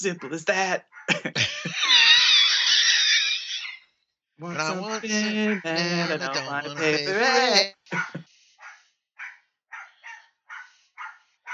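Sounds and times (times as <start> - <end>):
speech: 0.0 - 2.0, 4.4 - 8.2
laughter: 0.0 - 3.2, 4.4 - 8.3
dog barking: 4.6 - 11.5.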